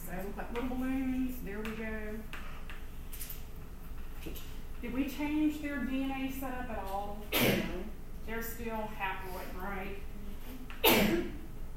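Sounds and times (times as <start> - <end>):
speech: 0.1 - 1.9, 4.2 - 10.1
sneeze: 7.3 - 7.8, 10.8 - 11.4.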